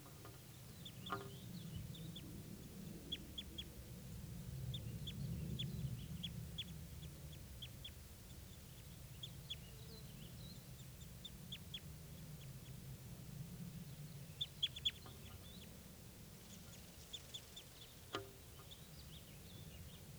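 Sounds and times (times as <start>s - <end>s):
bird calls: 0.1s - 12.8s, 13.8s - 20.1s.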